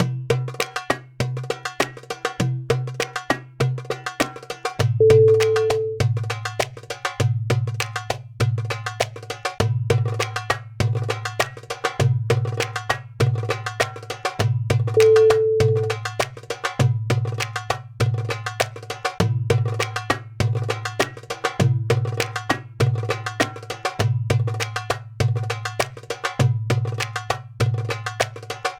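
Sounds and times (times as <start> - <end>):
Arabian rhythms: 0.0 - 28.7.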